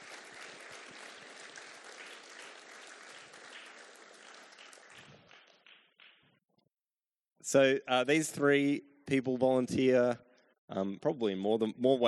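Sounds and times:
round of applause: 0.0s - 6.0s
speech: 7.4s - 12.0s.

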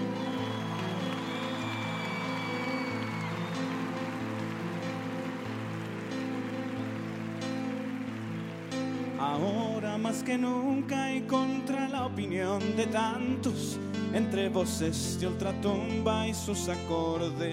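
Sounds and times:
audience applause: 0.0s - 10.3s
speech: 9.2s - 17.5s.

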